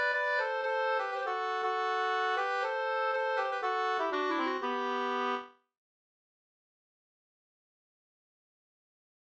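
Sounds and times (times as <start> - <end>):
two-part polska folk dance tune: 0.0 - 5.5.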